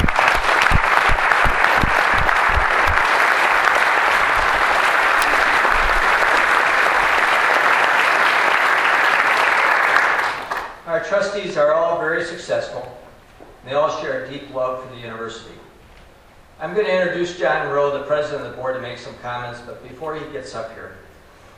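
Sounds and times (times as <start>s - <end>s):
audience applause: 0.0s - 10.8s
speech: 11.1s - 13.0s, 13.6s - 15.7s, 16.6s - 21.1s.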